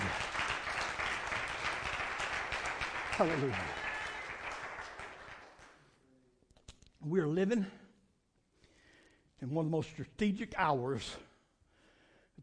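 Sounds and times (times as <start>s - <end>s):
audience applause, hand clapping: 0.0s - 5.8s
speech: 3.2s - 3.8s, 7.1s - 7.8s, 9.4s - 11.3s.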